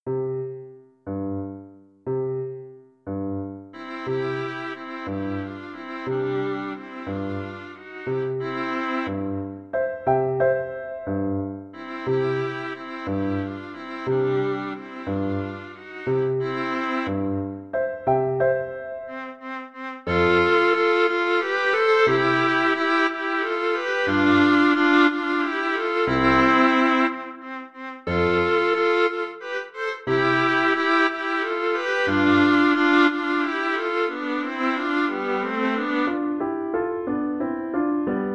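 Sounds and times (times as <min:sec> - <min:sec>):
viola duet: 0:00.3 - 0:38.2.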